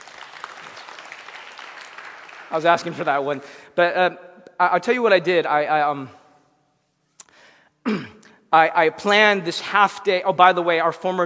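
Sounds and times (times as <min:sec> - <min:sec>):
audience clapping: 0:00.0 - 0:03.4
speech: 0:02.5 - 0:06.2, 0:07.8 - 0:11.2.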